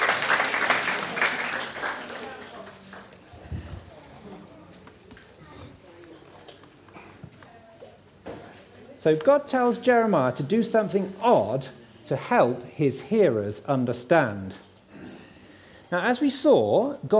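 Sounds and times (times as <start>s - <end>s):
audience applause: 0.0s - 3.3s
speech: 9.0s - 14.7s, 15.9s - 17.1s.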